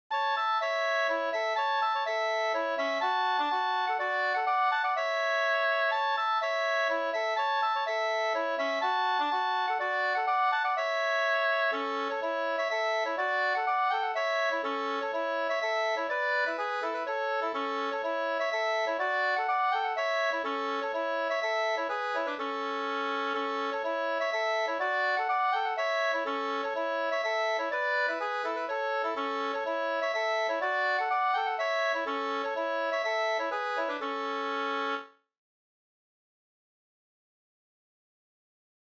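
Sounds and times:
polska dance tune: 0:00.1 - 0:35.1.

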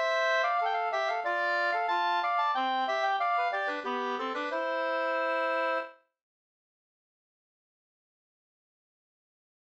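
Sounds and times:
Swedish polska folk dance tune: 0:00.0 - 0:05.9.

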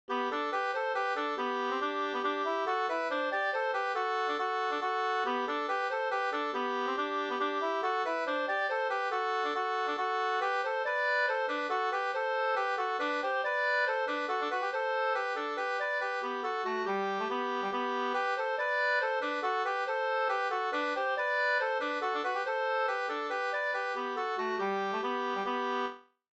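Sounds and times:
folk dance music: 0:00.1 - 0:25.9.

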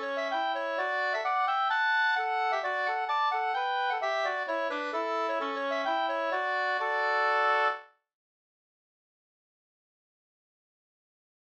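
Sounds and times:
hambo polska folk dance tune: 0:00.0 - 0:07.9.

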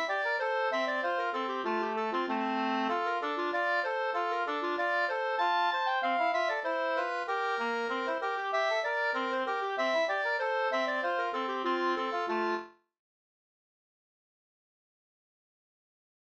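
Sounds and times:
polka music: 0:00.0 - 0:12.8.

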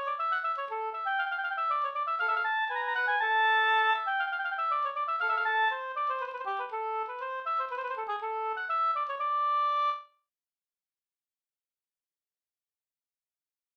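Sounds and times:
polska dance tune: 0:00.0 - 0:10.0.

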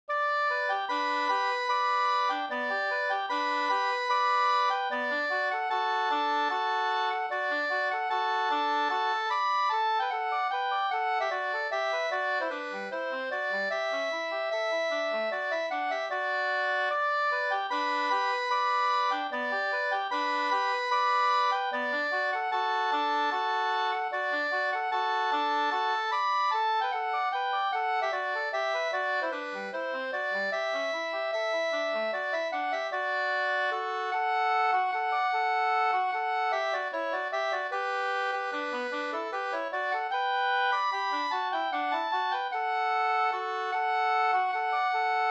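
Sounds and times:
waltz music: 0:00.1 - 0:45.2.

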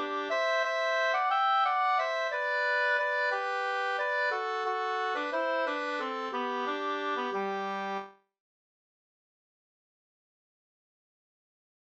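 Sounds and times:
waltz in two parts: 0:00.0 - 0:08.2.

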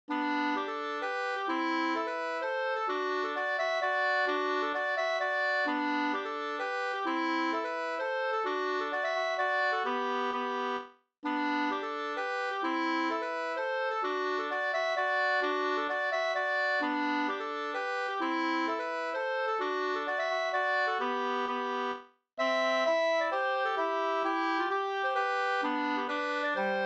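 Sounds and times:
hambo polska folk dance tune: 0:00.1 - 0:26.8.

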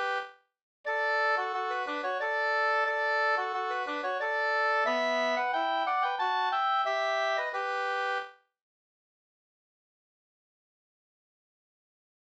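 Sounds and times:
two-part polska folk dance tune: 0:00.9 - 0:08.3.

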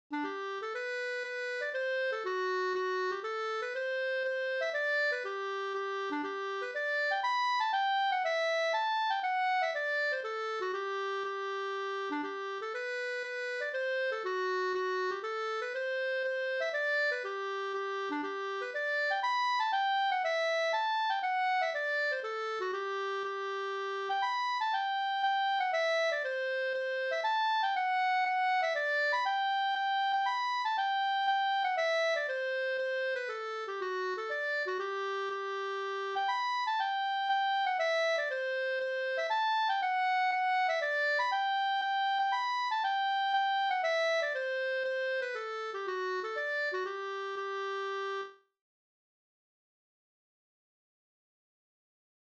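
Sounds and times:
polska folk dance tune: 0:00.1 - 0:48.4.

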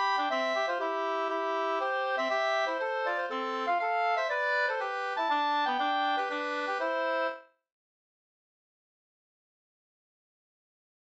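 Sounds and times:
slangpolska folk dance tune: 0:00.0 - 0:07.5.

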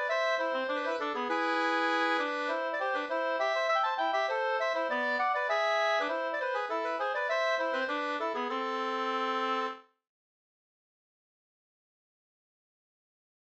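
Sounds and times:
polska dance tune: 0:00.0 - 0:09.8.

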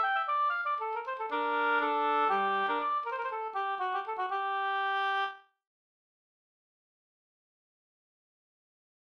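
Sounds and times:
Swedish polska folk tune: 0:00.0 - 0:05.3.

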